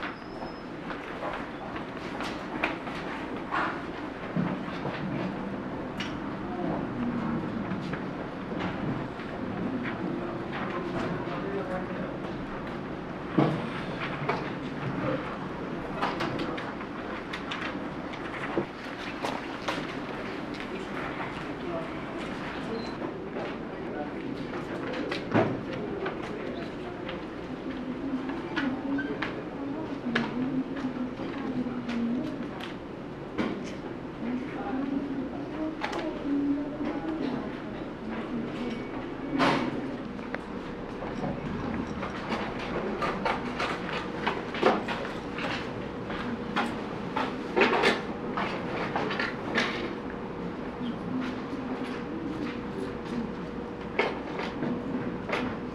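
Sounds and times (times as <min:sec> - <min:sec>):
office chatter: 0:00.0 - 0:55.7.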